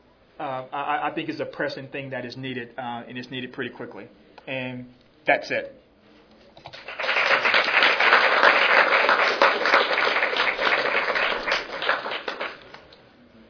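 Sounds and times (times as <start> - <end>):
speech: 0.4 - 5.8
audience applause: 6.8 - 12.9.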